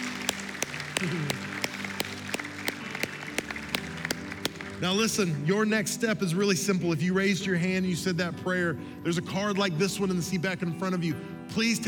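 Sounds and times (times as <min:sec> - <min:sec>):
audience applauding: 0:00.0 - 0:04.8
speech: 0:01.0 - 0:01.6, 0:04.8 - 0:11.8.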